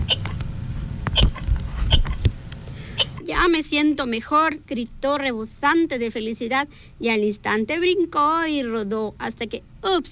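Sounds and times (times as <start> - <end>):
hiccups: 1.2 - 2.2, 3.0 - 3.2
soft breathy clicks: 1.9 - 3.2
speech: 3.4 - 10.0.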